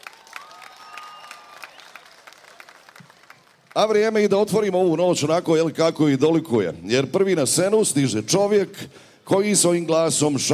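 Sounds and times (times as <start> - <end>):
audience applause at a live concert: 0.0 - 3.8
speech: 3.8 - 10.5.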